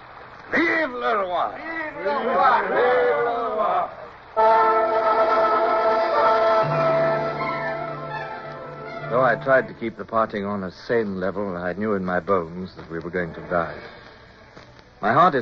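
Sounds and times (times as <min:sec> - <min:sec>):
crowd cheering: 0:00.5 - 0:10.0
speech: 0:00.8 - 0:05.3, 0:09.1 - 0:14.0, 0:15.0 - 0:15.4
sustained whistle-like tone: 0:04.4 - 0:10.0.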